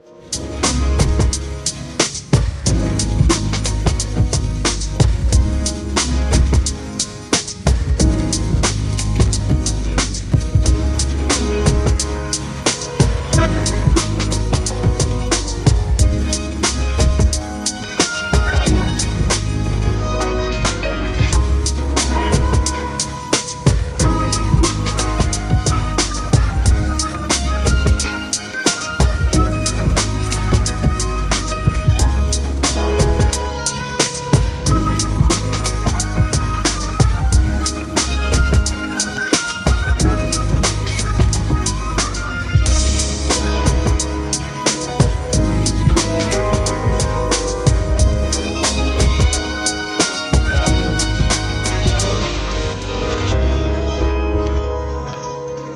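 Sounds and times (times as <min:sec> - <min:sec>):
hip hop music: 0:00.0 - 0:55.7.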